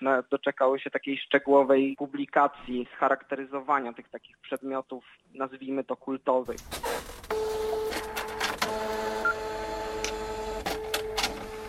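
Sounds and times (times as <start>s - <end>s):
speech: 0.0s - 7.5s
receipt printer printing: 6.8s - 11.6s.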